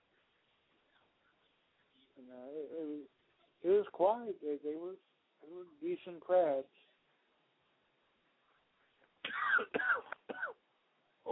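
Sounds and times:
speech: 0:02.2 - 0:06.9
coughing: 0:09.2 - 0:10.6.

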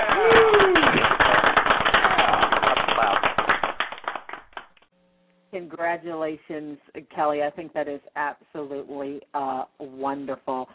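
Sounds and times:
quick hand clapping: 0:00.0 - 0:04.9
speech: 0:05.7 - 0:10.7.

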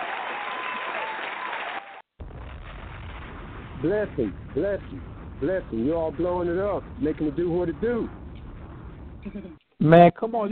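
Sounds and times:
applause: 0:00.0 - 0:02.1
speech: 0:03.8 - 0:08.2, 0:09.2 - 0:10.5.

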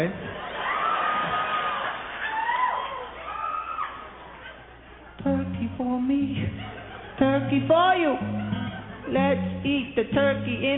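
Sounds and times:
speech: 0:00.0 - 0:00.2, 0:05.2 - 0:10.7
laughter: 0:00.3 - 0:03.2, 0:06.3 - 0:09.5
audience clapping and cheering: 0:00.4 - 0:04.5
whoops and shouts: 0:00.6 - 0:04.1.

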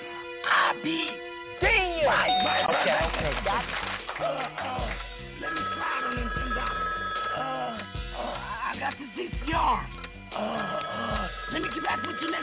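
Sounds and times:
speech: 0:00.8 - 0:06.4, 0:08.8 - 0:12.4
telephone ringing: 0:05.4 - 0:08.0, 0:10.4 - 0:12.4.

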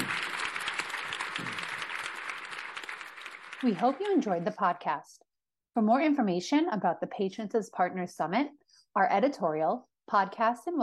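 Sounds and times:
audience applauding a panel at a clinical research summit: 0:00.0 - 0:04.7
speech: 0:03.6 - 0:10.8.

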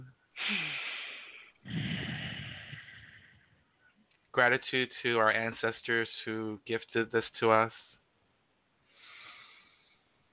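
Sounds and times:
deep breaths taken slowly together: 0:00.4 - 0:04.0, 0:08.9 - 0:10.1
speech: 0:04.4 - 0:07.9.

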